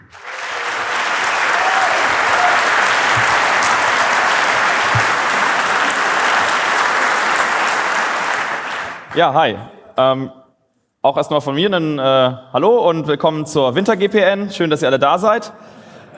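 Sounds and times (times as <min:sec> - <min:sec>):
audience applause: 0:00.0 - 0:09.2
speech: 0:09.2 - 0:10.4, 0:11.0 - 0:15.8.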